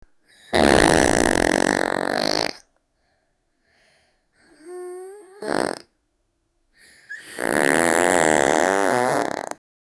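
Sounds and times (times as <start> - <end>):
young woman farting: 0.5 - 2.6, 5.4 - 5.9, 7.2 - 9.6.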